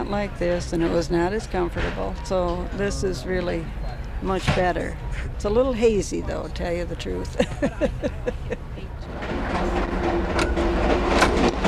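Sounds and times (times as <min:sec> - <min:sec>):
passenger train rumbling along the rails: 0:00.0 - 0:11.6
speech: 0:00.1 - 0:08.6
laughter: 0:07.2 - 0:09.0.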